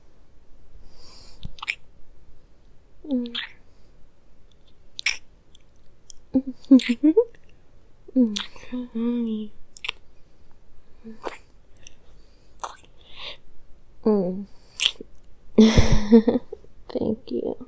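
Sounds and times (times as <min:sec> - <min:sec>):
intimate kissing: 0:01.4 - 0:01.8, 0:03.2 - 0:03.6, 0:04.6 - 0:07.4, 0:08.3 - 0:08.6, 0:09.8 - 0:10.0, 0:12.6 - 0:12.9, 0:14.8 - 0:15.0
speech: 0:06.7 - 0:07.4, 0:08.2 - 0:09.6, 0:11.0 - 0:11.4, 0:15.6 - 0:17.6.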